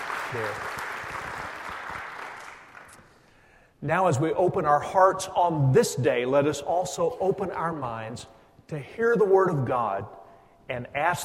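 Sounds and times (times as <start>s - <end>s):
audience applauding: 0.0s - 3.2s
speech: 0.3s - 0.8s, 3.8s - 11.2s.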